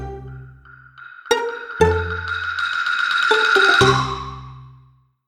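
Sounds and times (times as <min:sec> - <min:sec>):
slow comic sound effect: 0:01.3 - 0:04.6.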